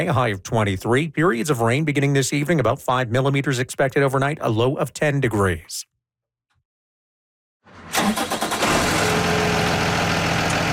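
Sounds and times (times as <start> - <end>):
speech: 0.0 - 5.9
yellow school bus diesel engine starting and idling: 7.7 - 10.7.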